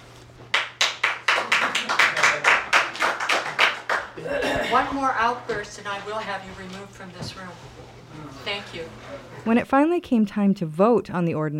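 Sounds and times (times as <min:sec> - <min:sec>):
applause at a meeting: 0:00.5 - 0:04.2
speech: 0:04.7 - 0:11.5.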